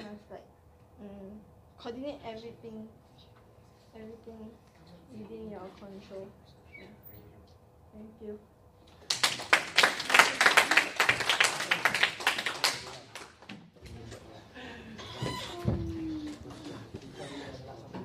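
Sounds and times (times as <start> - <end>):
speech: 1.0 - 3.0, 3.9 - 7.0, 7.9 - 8.5
audience applause: 9.0 - 13.4.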